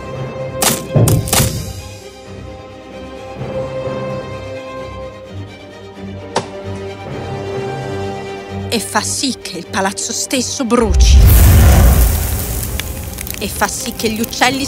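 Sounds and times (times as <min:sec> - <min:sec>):
wood being chopped to pieces: 0:00.6 - 0:01.7, 0:06.3 - 0:06.6
speech: 0:08.8 - 0:12.1, 0:13.4 - 0:14.6.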